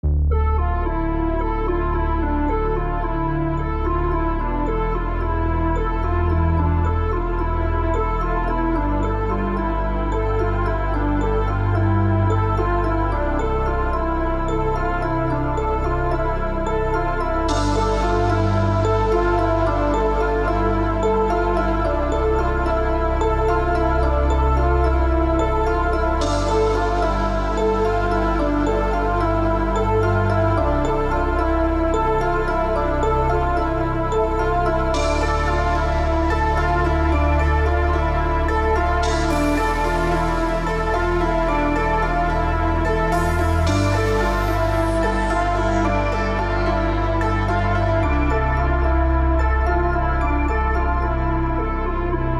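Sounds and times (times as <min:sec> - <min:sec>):
ambient music: 0:00.0 - 0:52.3.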